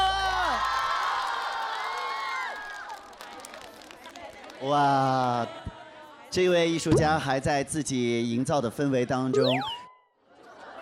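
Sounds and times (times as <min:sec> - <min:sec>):
crowd cheering and whooping: 0:00.0 - 0:03.0
clapping: 0:00.4 - 0:04.7
speech: 0:04.6 - 0:05.7, 0:06.3 - 0:09.8.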